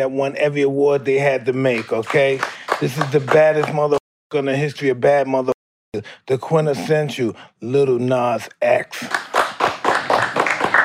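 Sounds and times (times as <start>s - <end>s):
speech: 0.0s - 9.2s
clapping: 1.7s - 4.0s, 9.0s - 10.8s.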